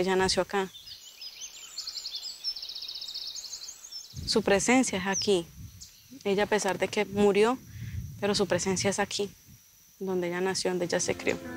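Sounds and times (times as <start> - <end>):
speech: 0.0 - 0.8, 4.3 - 5.6, 6.2 - 9.4, 10.0 - 11.5
small bird singing: 0.0 - 6.5.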